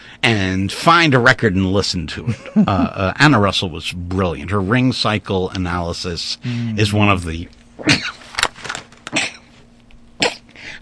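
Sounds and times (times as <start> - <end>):
faint low hum: 0.0 - 10.7
speech: 0.2 - 8.2
sneeze: 9.1 - 9.5, 10.2 - 10.5.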